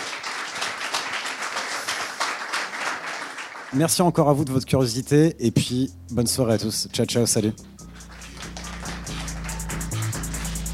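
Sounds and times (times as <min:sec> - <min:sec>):
audience applause: 0:00.0 - 0:03.8, 0:07.9 - 0:10.7
speech: 0:03.7 - 0:07.8.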